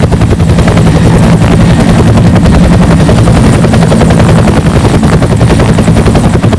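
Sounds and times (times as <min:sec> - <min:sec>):
helicopter: 0:00.0 - 0:06.5.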